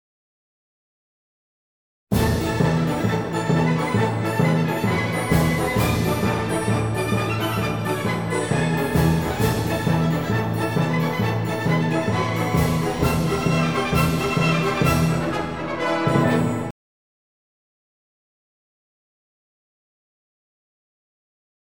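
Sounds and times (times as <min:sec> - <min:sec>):
song chorus: 0:02.1 - 0:16.7.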